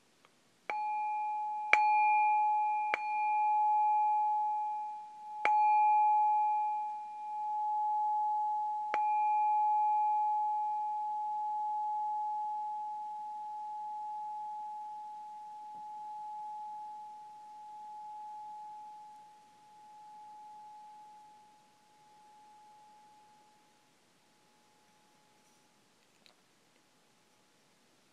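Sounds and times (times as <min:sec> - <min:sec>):
meditation bell ringing: 0:00.7 - 0:25.6.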